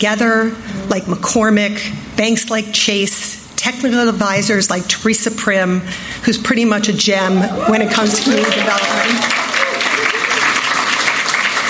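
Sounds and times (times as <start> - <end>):
speech: 0.0 - 9.4
audience applause at a community development event: 7.5 - 11.6.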